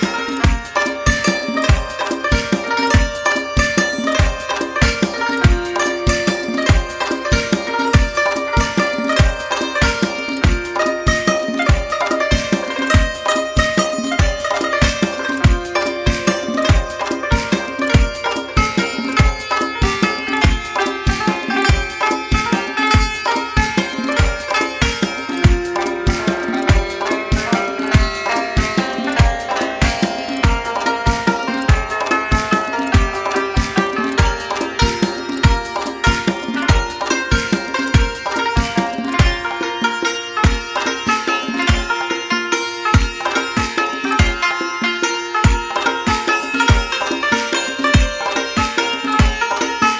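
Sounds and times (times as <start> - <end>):
santur: 0.0 - 49.9.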